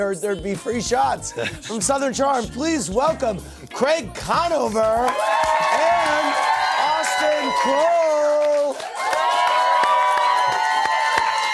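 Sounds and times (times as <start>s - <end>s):
speech: 0.0s - 6.5s, 7.2s - 8.2s
audience applause and cheering: 5.0s - 11.5s.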